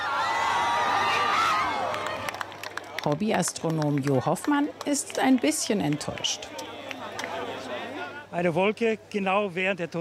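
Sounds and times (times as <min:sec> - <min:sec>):
crowd cheering and applauding on a beach: 0:00.0 - 0:07.8
speech: 0:03.0 - 0:06.6, 0:08.3 - 0:09.9.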